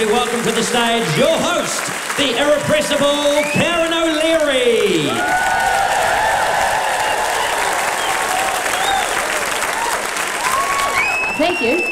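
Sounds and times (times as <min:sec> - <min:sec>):
speech: 0:00.0 - 0:06.2, 0:11.4 - 0:11.9
audience applause welcoming a host onto the stage at a celebration night: 0:00.0 - 0:11.9
scattered audience cheers and whoops: 0:04.8 - 0:11.9.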